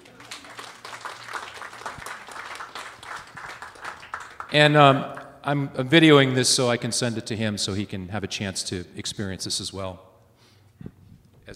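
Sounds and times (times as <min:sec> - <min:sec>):
audience applause: 0:00.0 - 0:04.8
speech: 0:04.5 - 0:10.1.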